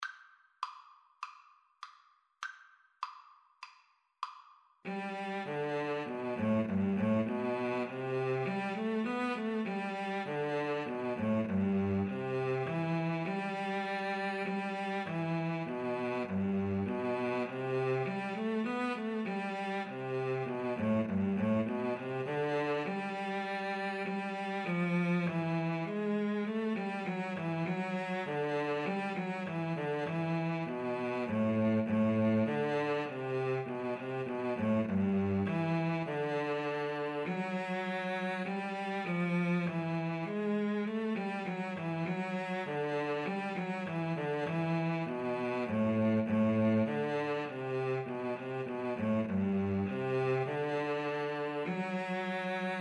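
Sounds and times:
violin and cello duet: 4.9 - 52.8.

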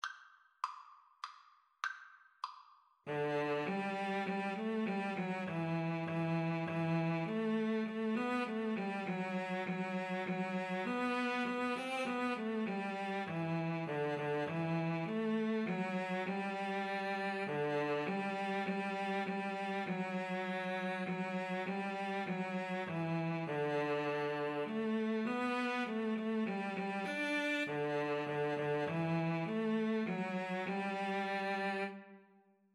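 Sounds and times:
cello duet: 3.1 - 32.2.

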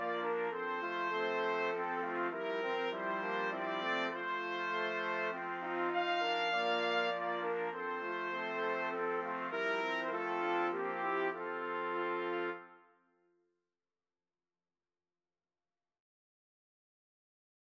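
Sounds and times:
trumpet playing a lullaby: 0.0 - 13.0.

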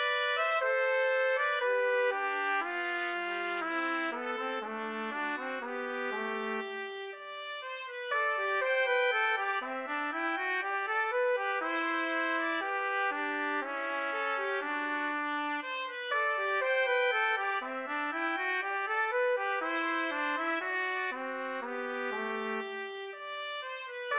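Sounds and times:
two-trumpet duet: 0.0 - 24.1.

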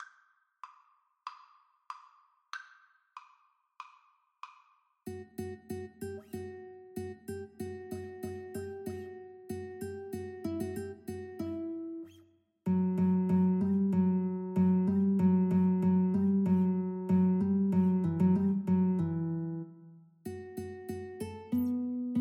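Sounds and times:
guitar duet: 5.1 - 22.2.

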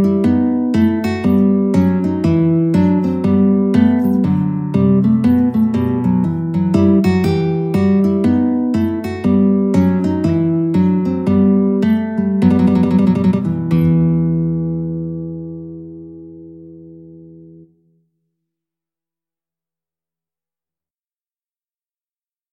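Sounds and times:
alto guitar playing a bourree: 0.0 - 17.9.

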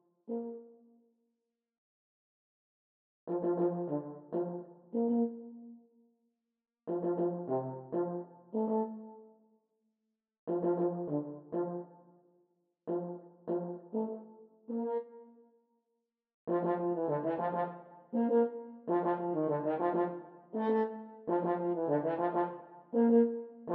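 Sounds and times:
French horn duet: 3.3 - 5.4, 6.9 - 9.0, 10.5 - 11.9, 12.9 - 15.0, 16.5 - 23.7.

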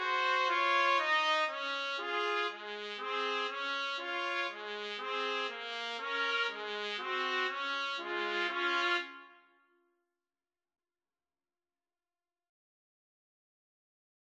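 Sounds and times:
trumpet trio: 0.0 - 9.3.

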